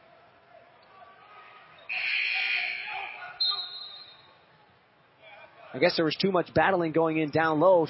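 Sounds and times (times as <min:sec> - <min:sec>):
referee's whistle at basketball game: 0:01.8 - 0:04.4
speech: 0:05.7 - 0:07.8.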